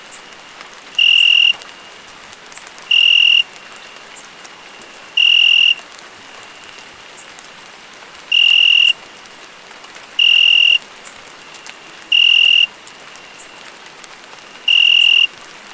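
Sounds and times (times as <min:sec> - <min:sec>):
rain: 0:00.0 - 0:15.7
crickets chirping: 0:01.0 - 0:02.0, 0:02.9 - 0:04.0, 0:04.6 - 0:05.8, 0:08.3 - 0:09.2, 0:10.2 - 0:10.8, 0:11.4 - 0:13.7, 0:14.5 - 0:15.3.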